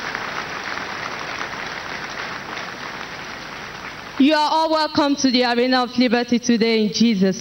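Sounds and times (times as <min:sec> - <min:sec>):
church service congregation applauding at the Arena of Liberty: 0:00.0 - 0:04.5
speech: 0:04.2 - 0:07.3.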